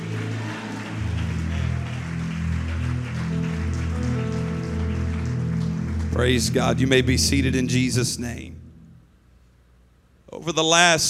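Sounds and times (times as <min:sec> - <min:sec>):
audience clapping hands: 0:00.0 - 0:07.9
speech: 0:06.2 - 0:08.6, 0:10.4 - 0:11.0.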